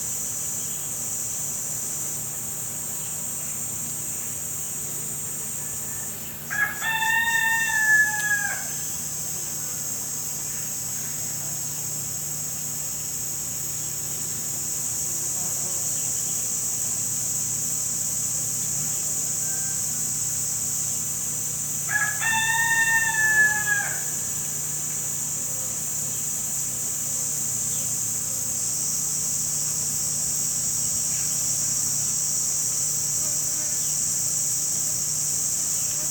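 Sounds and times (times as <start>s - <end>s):
insects in a soundscape: 0.0s - 36.0s.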